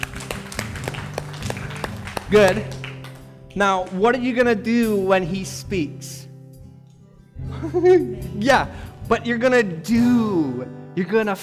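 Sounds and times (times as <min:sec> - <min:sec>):
sparse hand claps: 0:00.0 - 0:04.1
speech: 0:02.3 - 0:02.8, 0:03.6 - 0:06.1, 0:07.6 - 0:11.4.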